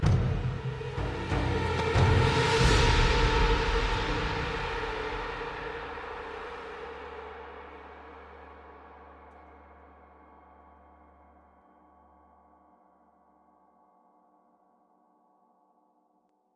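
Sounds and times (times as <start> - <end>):
drum: 0.0 - 6.5.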